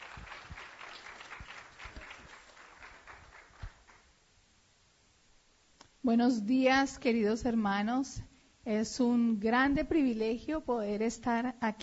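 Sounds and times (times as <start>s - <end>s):
applause: 0.0s - 4.2s
speech: 6.0s - 11.8s.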